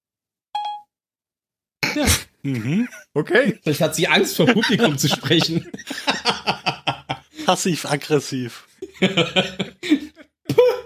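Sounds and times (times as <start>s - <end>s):
voice assistant ping tone: 0.6s - 0.9s
speech: 2.0s - 6.4s, 7.5s - 9.7s
laughter: 2.5s - 10.8s.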